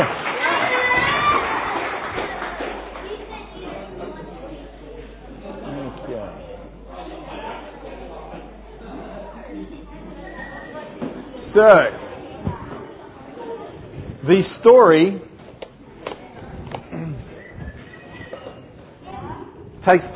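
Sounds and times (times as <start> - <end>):
audience clapping and cheering: 0.0 - 3.9
crowd chatter: 0.0 - 20.1
speech: 11.6 - 12.0, 14.3 - 15.3, 19.9 - 20.1.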